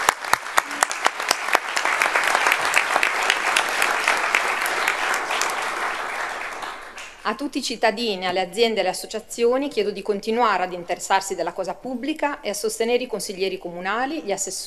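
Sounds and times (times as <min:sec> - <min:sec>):
audience applause: 0:00.0 - 0:07.2
speech: 0:07.3 - 0:14.6.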